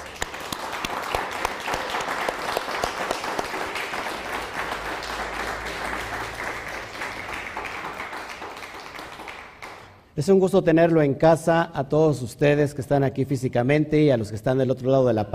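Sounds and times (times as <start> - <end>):
applause: 0.0 - 10.0
speech: 10.2 - 15.3.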